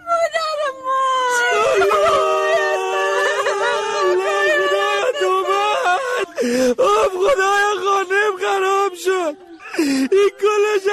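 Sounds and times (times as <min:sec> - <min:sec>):
child crying: 0:01.3 - 0:07.6, 0:09.6 - 0:10.4
laughter: 0:01.5 - 0:10.9.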